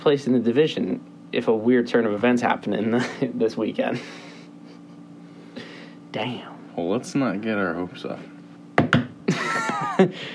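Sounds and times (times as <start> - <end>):
speech: 0.0 - 4.3, 6.1 - 8.3, 10.0 - 10.3
knocking on wood: 8.8 - 9.2.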